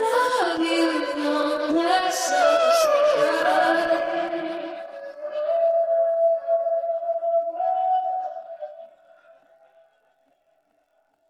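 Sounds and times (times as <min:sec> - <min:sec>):
person singing: 0:00.0 - 0:08.5.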